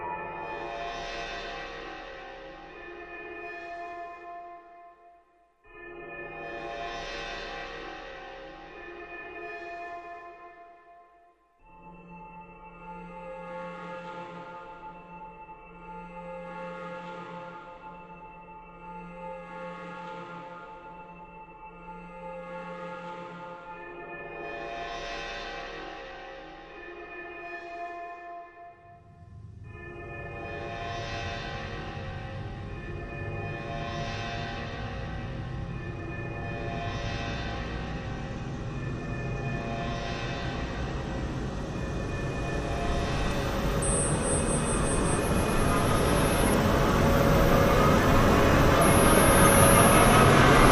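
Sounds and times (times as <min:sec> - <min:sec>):
drones: 0:29.2 - 0:50.6.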